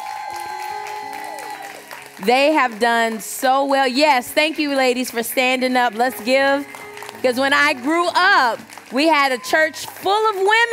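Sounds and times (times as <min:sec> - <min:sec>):
audience applause: 0:00.0 - 0:10.7
speech: 0:02.2 - 0:10.7.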